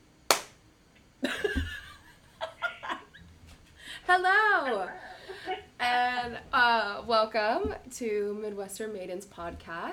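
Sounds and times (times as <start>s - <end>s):
group clapping hands once together: 0.3s - 0.6s
speech: 4.1s - 9.9s.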